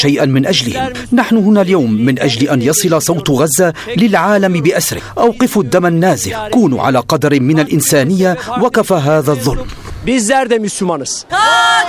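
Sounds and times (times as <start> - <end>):
speech: 0.0 - 11.8
protesters at a demonstration in Turkey supporting Gaza chanting slogans: 11.3 - 11.8.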